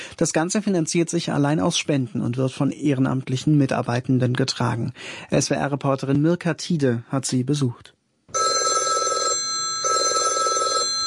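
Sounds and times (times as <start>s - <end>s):
speech: 0.2s - 8.0s
telephone ringtone as alarm signal: 8.3s - 11.0s.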